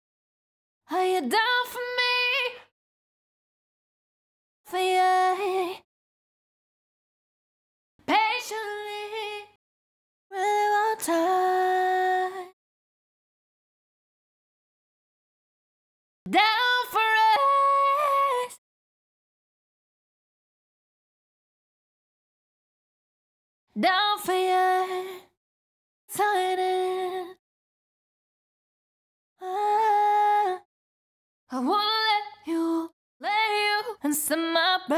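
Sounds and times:
pop vocals a cappella: 0:00.9 - 0:02.7, 0:04.7 - 0:05.9, 0:08.0 - 0:09.6, 0:10.3 - 0:12.6, 0:16.3 - 0:18.6, 0:23.8 - 0:25.3, 0:26.1 - 0:27.4, 0:29.4 - 0:30.7, 0:31.5 - 0:34.9.

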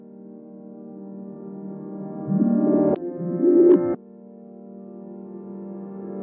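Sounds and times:
120 BPM G minor reverse pad: 0:02.1 - 0:03.9.

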